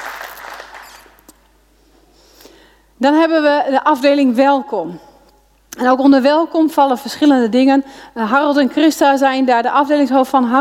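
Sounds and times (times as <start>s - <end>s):
audience applause: 0.0s - 1.2s
speech: 3.0s - 5.1s, 5.8s - 10.5s.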